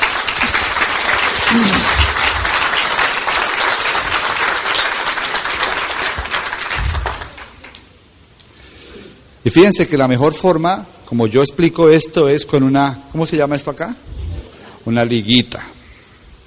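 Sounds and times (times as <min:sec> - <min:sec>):
audience applause: 0:00.0 - 0:07.8
speech: 0:01.5 - 0:02.0, 0:09.4 - 0:14.2, 0:14.8 - 0:15.8.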